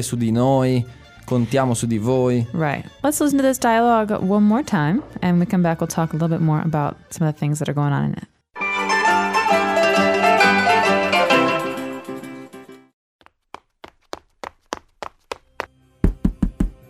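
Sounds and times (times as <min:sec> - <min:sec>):
speech: 0:00.0 - 0:08.3
music: 0:00.0 - 0:13.0, 0:15.7 - 0:16.8
knocking on a door: 0:16.0 - 0:16.8.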